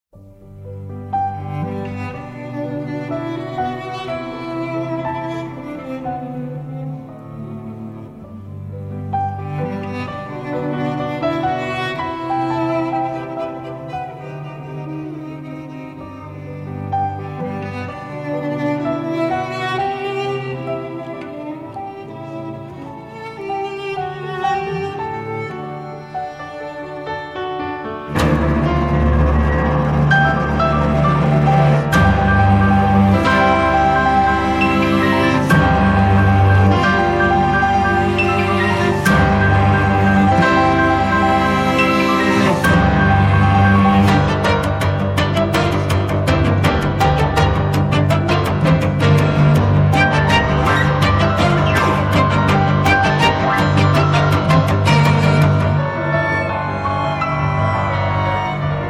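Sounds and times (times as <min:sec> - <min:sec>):
strings: 0:00.2 - 0:58.8.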